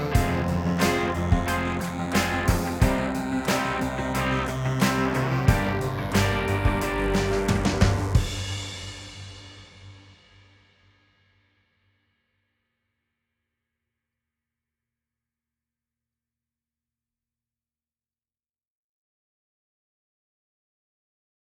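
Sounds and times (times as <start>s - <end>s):
rhythmic pattern without bass or melody: 0.0s - 8.8s.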